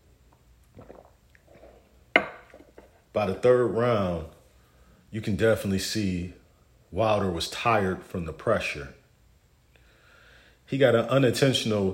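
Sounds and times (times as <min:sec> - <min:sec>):
sipping tea: 0:00.3 - 0:03.0
speech: 0:03.2 - 0:04.4, 0:05.1 - 0:09.0, 0:10.7 - 0:11.9.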